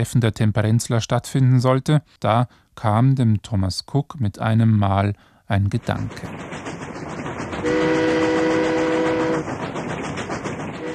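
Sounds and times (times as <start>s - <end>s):
speech: 0.0s - 6.8s
train running on rails: 5.6s - 10.9s
train horn blast: 7.6s - 9.5s, 10.8s - 10.9s.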